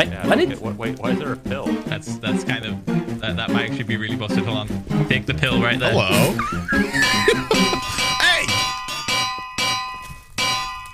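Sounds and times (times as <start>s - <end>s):
speech: 0.0s - 7.9s
laughter: 5.8s - 8.5s
anvils dropping and clanging in video game: 7.0s - 10.9s.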